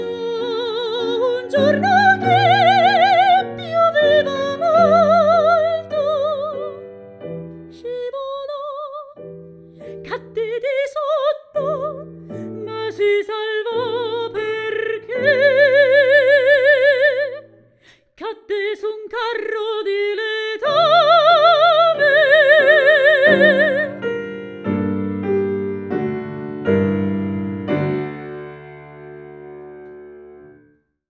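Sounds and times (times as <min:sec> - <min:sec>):
person singing satirical songs: 0:00.0 - 0:06.9, 0:09.9 - 0:17.6, 0:18.2 - 0:24.0
piano: 0:00.0 - 0:31.0.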